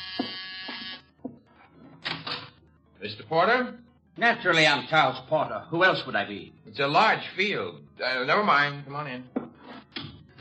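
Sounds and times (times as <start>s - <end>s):
harsh door buzzer: 0.0s - 1.2s
speech: 3.0s - 9.4s.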